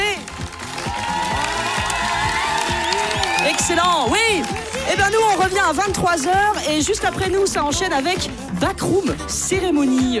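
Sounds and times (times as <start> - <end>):
studio audience applauding and cheering: 0.0 - 7.3
loud music: 0.0 - 10.1
whoops: 0.7 - 4.7
speech: 3.7 - 10.1.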